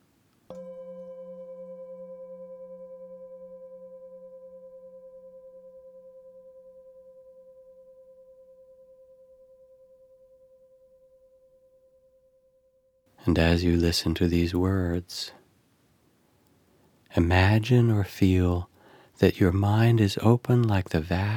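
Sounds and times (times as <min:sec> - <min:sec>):
meditation bells ringing: 0:00.5 - 0:12.4
speech: 0:13.2 - 0:15.4, 0:17.2 - 0:21.3.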